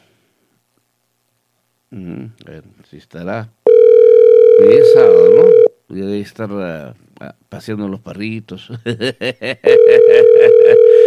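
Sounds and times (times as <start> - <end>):
speech: 1.9 - 3.6, 4.5 - 10.8
telephone ringing tone on a call: 3.7 - 5.7, 9.7 - 11.0.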